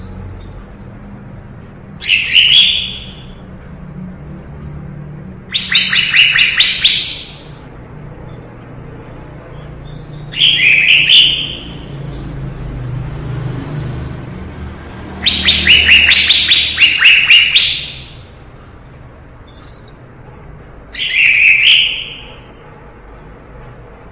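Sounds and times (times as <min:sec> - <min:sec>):
leafbird singing: 0:02.0 - 0:03.8, 0:05.3 - 0:07.7, 0:09.5 - 0:12.2, 0:15.2 - 0:18.4, 0:19.5 - 0:20.0, 0:20.9 - 0:22.4.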